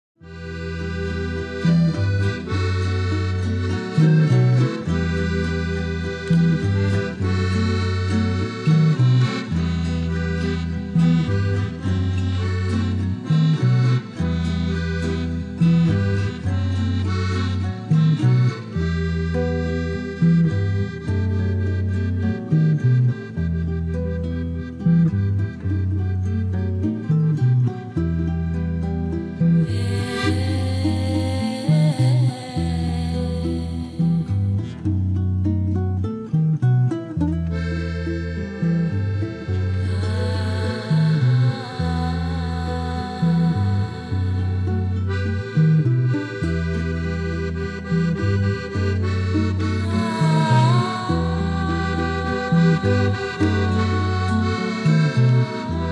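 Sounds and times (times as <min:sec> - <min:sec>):
fugue: 0:00.2 - 0:55.8.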